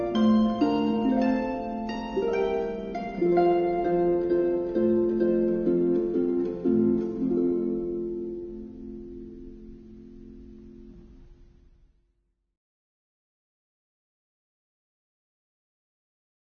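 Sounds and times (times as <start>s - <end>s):
harp: 0.0s - 11.5s.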